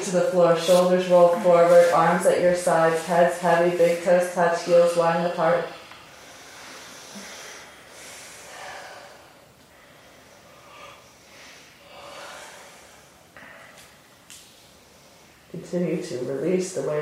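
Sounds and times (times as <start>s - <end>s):
speech: 0.0s - 5.8s, 15.7s - 17.0s
slow breathing during a yoga relaxation: 5.6s - 15.5s.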